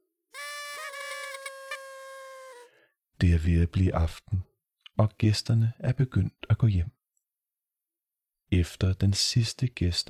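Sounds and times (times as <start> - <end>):
party horn being blown: 0.3 - 2.7
speech: 3.2 - 7.0, 8.5 - 10.0.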